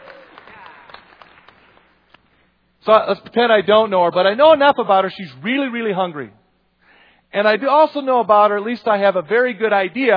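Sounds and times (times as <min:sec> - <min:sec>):
audience round of applause: 0:00.0 - 0:01.8
speech: 0:02.8 - 0:06.4, 0:07.3 - 0:10.1.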